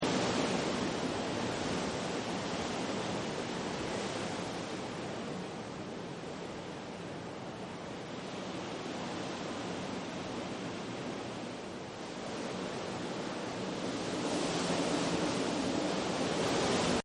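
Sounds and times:
wind: 0.0 - 17.0.

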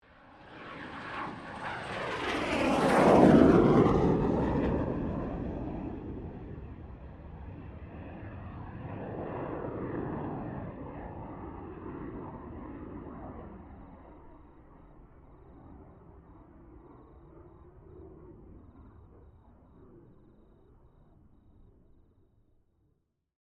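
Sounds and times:
FA-18 Hornet aircraft passing: 0.1 - 14.0.

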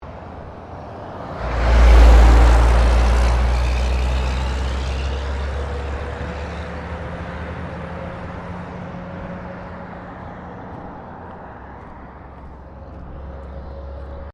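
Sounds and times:
semi-trailer truck passing by: 0.0 - 14.3
traffic: 0.0 - 14.3.

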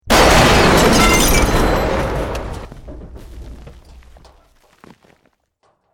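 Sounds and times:
medium building collapse: 0.0 - 5.8.

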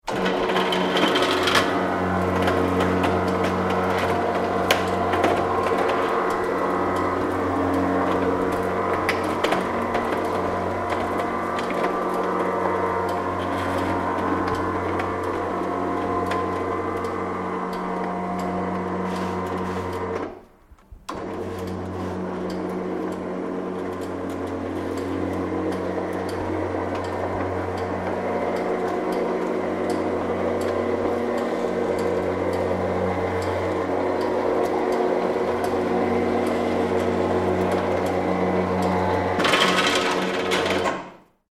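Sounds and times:
motorized security shutters opening and closing: 0.0 - 41.4.

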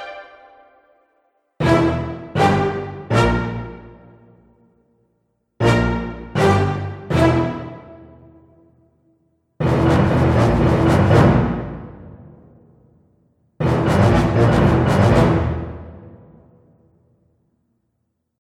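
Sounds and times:
dramatic action film music: 1.6 - 4.1, 5.6 - 8.2, 9.6 - 12.7, 13.6 - 16.7.

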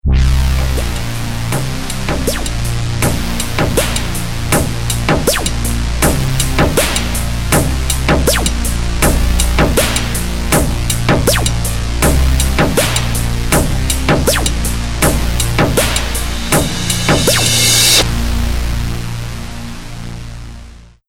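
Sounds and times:
grinder music ident at 80 BPM: 0.0 - 20.1.

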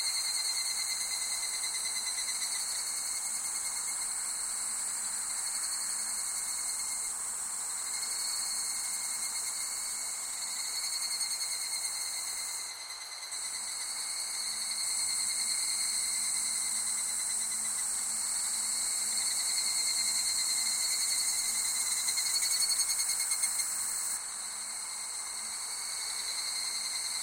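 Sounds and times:
shrill summer insect chorus in Japan: 0.0 - 27.2.

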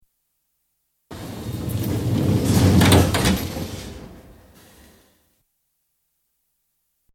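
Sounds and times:
London Underground Central Line train sliding door closing: 1.1 - 5.1.

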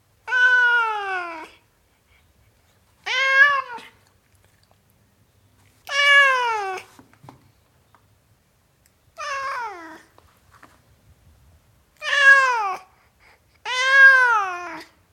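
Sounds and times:
tom cat meowing: 0.3 - 1.6, 3.0 - 4.0, 5.8 - 6.9, 9.2 - 10.1, 12.0 - 12.9, 13.6 - 14.9.

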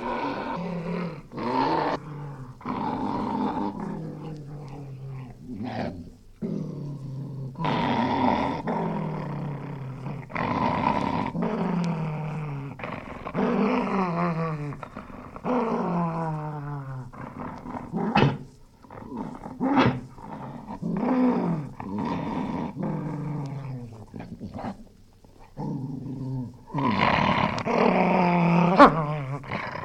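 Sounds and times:
Spaniel snarling angrily: 0.0 - 24.8, 25.6 - 29.8.

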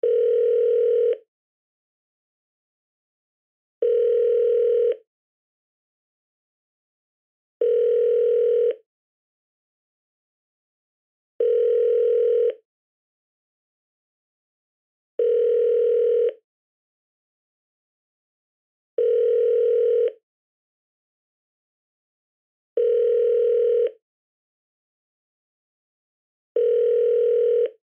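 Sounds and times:
telephone ringing: 0.0 - 1.2, 3.8 - 5.0, 7.6 - 8.8, 11.4 - 12.6, 15.2 - 16.4, 19.0 - 20.2, 22.8 - 24.0, 26.6 - 27.8.

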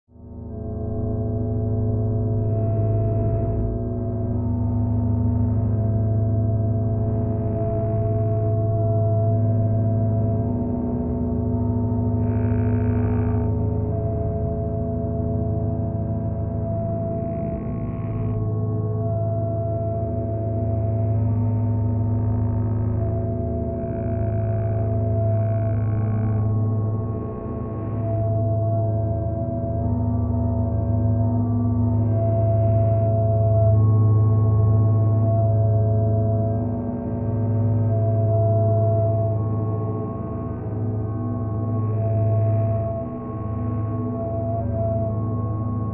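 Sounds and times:
drone: 0.2 - 45.9.

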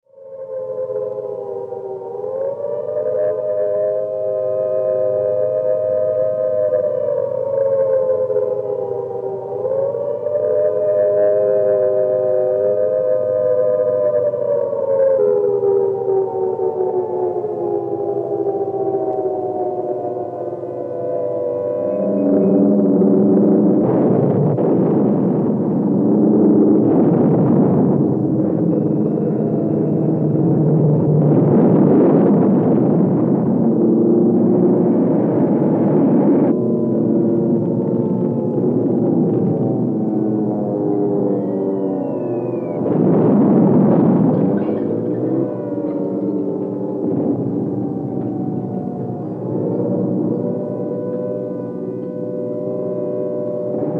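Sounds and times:
air raid sirens in London: 0.0 - 53.9.

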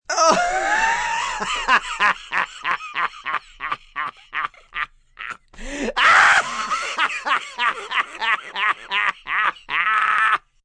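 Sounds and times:
man laughing hard, hysterical, raspy and out of breath: 0.1 - 10.6.

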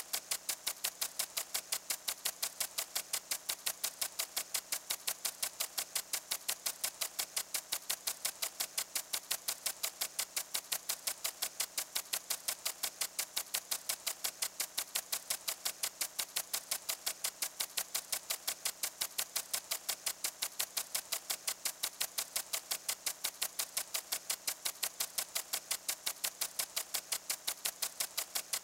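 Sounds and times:
household lawn water sprinkler steady constant sputter: 0.0 - 28.6.

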